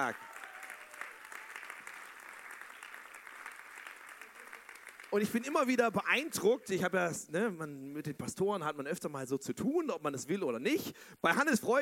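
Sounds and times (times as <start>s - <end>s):
speech: 0.0s - 0.3s, 5.1s - 11.8s
audience applause: 0.0s - 5.5s.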